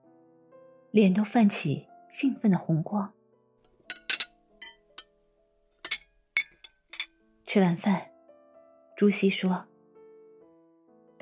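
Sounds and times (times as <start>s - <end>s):
speech: 0.9s - 3.2s, 7.6s - 8.1s, 9.0s - 9.7s
glasses clinking in a toast: 3.9s - 5.1s, 5.8s - 7.2s.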